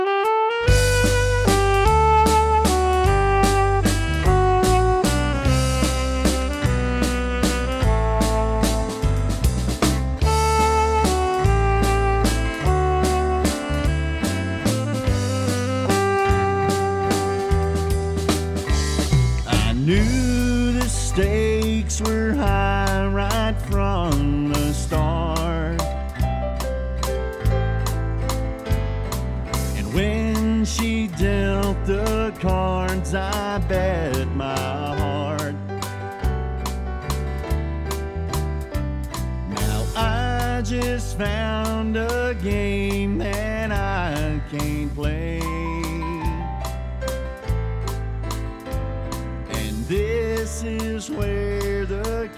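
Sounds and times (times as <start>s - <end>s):
waltz music: 0.2s - 30.3s, 31.3s - 52.1s.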